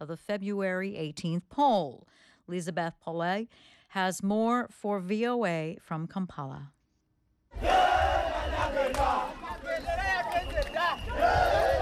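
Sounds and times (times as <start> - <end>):
speech: 0.0 - 6.8
large crowd cheering and shouting at inauguration celebration: 7.6 - 11.8
whistles: 8.3 - 9.1, 10.0 - 11.5.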